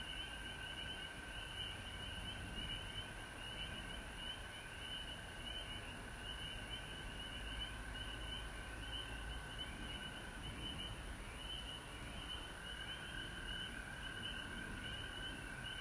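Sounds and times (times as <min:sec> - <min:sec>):
frog chorus trilling: 0:00.0 - 0:15.7.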